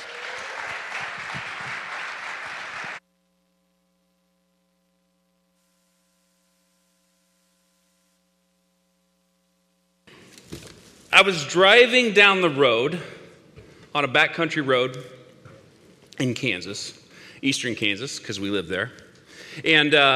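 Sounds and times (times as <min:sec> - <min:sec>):
audience applause: 0:00.0 - 0:03.0
steady low electrical hum: 0:02.8 - 0:20.1
speech: 0:11.2 - 0:13.2, 0:14.0 - 0:15.2, 0:16.2 - 0:19.0, 0:19.6 - 0:20.1.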